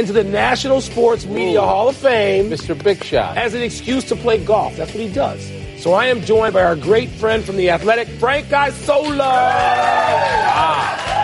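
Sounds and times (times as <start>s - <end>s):
speech: 0.0s - 11.2s
crowd applauding: 9.0s - 11.2s
whoops and shouts: 9.3s - 11.2s.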